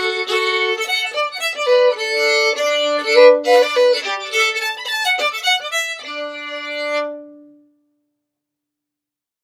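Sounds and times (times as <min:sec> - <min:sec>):
fiddle playing a reel: 0:00.0 - 0:07.4.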